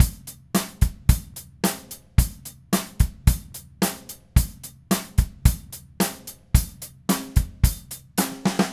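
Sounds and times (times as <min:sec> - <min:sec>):
DW Red Maple drum kit groove: 0:00.0 - 0:08.7.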